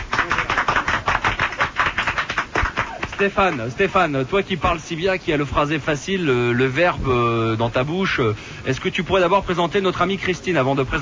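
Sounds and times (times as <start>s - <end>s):
audience applause: 0.0s - 4.0s
speech: 3.2s - 11.0s.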